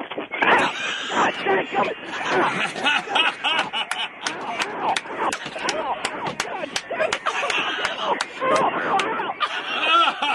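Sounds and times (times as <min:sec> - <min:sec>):
laughter: 0:00.5 - 0:10.3
crowd cheering wildly: 0:02.8 - 0:10.3.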